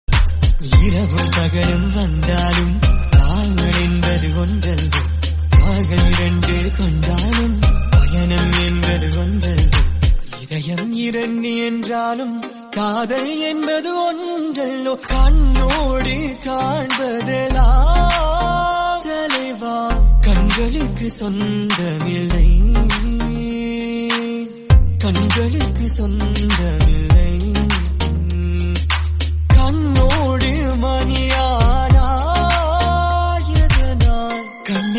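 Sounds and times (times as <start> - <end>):
Tamil trending music: 0.1 - 34.9.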